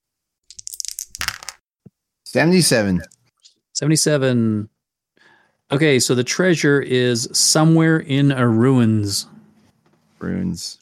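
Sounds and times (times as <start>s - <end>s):
percentile dice being rolled: 0.5s - 1.6s
speech: 2.3s - 3.2s, 3.8s - 4.8s, 5.7s - 9.4s, 10.2s - 10.8s.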